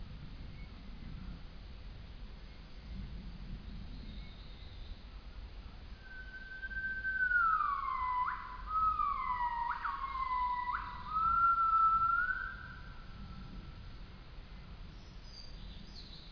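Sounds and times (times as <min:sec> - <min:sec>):
male Nomascus gabriellae calling: 0:06.0 - 0:12.9.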